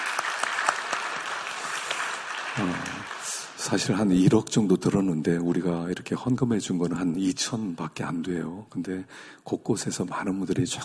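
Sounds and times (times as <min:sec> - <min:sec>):
applause: 0:00.0 - 0:04.0
speech: 0:02.6 - 0:03.0, 0:03.7 - 0:10.8.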